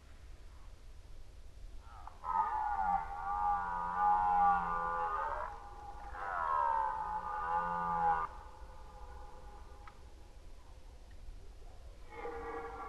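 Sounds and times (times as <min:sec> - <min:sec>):
red deer roaring during the rut: 0:02.0 - 0:08.3.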